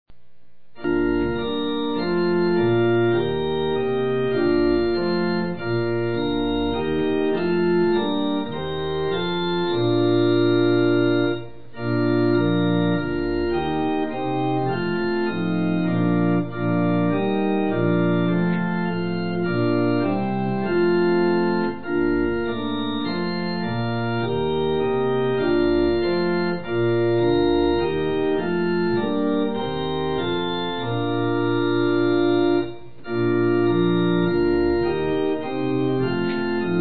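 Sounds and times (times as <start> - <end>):
hymn on organ: 0.7 - 36.7.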